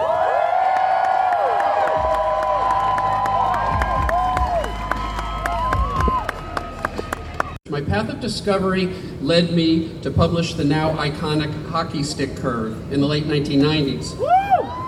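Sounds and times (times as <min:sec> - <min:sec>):
audience applause and cheering welcoming Professor Michael Mann: 0:00.0 - 0:07.6
speech: 0:07.9 - 0:14.3.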